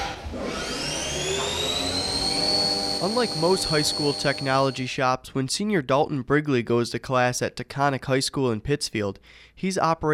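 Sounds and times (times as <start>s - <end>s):
manufacturing machine starting its cycle and changing tool: 0.0s - 4.9s
speech: 3.0s - 10.1s.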